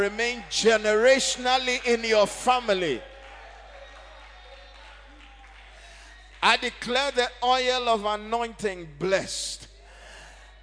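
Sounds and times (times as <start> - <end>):
speech: 0.0 - 3.1, 6.4 - 9.7
audience clapping and shouting: 0.0 - 7.9.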